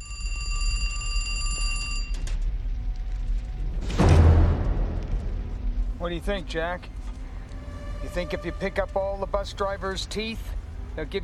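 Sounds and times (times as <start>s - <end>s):
telephone ringing: 0.0s - 2.3s
low rumble: 1.9s - 11.2s
speech: 6.1s - 7.0s, 8.0s - 11.2s.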